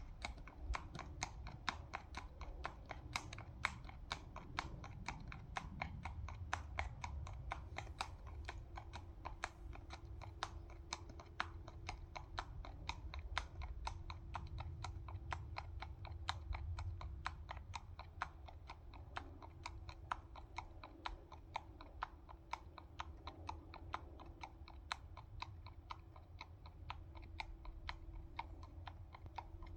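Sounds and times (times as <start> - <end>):
horse hoofbeats trotting: 0.0 - 29.7.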